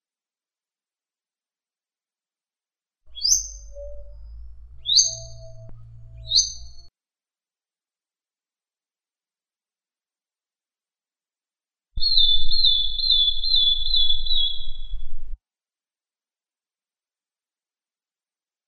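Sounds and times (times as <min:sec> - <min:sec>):
bird singing one long high pure whistle: 0:03.1 - 0:06.9, 0:12.0 - 0:15.4.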